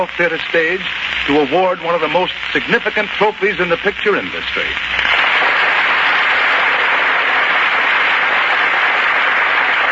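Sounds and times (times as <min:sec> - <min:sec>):
speech: 0:00.0 - 0:05.2
studio audience applause: 0:05.1 - 0:09.9.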